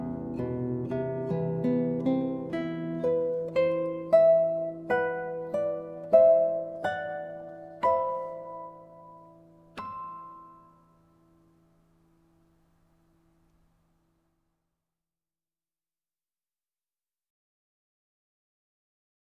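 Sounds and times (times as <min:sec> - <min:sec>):
ukulele playing a prelude: 0:00.0 - 0:11.7
guitar playing a prelude: 0:00.0 - 0:14.4.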